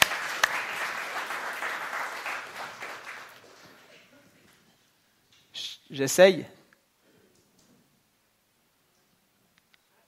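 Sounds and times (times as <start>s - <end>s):
crowd applauding: 0.0s - 4.1s
speech: 5.9s - 6.6s.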